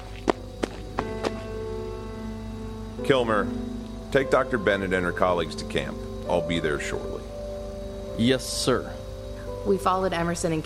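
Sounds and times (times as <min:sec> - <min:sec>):
footsteps of a man running up, audio drama effect: 0:00.0 - 0:01.6
speech: 0:03.0 - 0:07.4, 0:08.2 - 0:09.0, 0:09.6 - 0:10.6.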